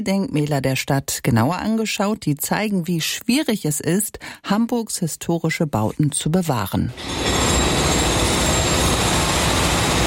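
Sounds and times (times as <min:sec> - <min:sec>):
speech: 0:00.0 - 0:07.7
construction site noise at the Jungfernstieg: 0:06.9 - 0:10.0.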